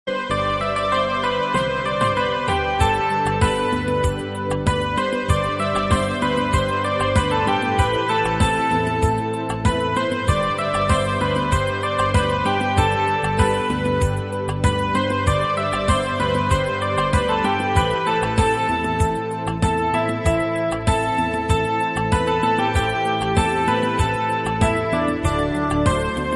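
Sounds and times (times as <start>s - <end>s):
instrumental ringtone: 0.1s - 26.3s.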